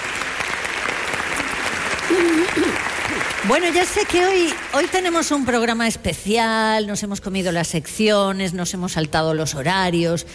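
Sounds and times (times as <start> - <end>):
theatre audience applause: 0.0 - 5.6
speech: 2.1 - 2.8, 3.4 - 10.3.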